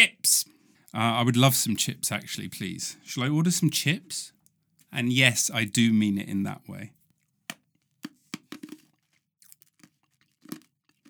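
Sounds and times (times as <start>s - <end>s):
speech: 0.9s - 7.0s
ice being crunched between the teeth: 7.5s - 11.0s.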